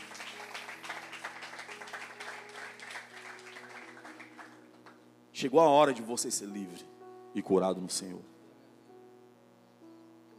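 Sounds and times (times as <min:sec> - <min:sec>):
crowd applause: 0:00.0 - 0:05.0
speech: 0:05.4 - 0:08.3.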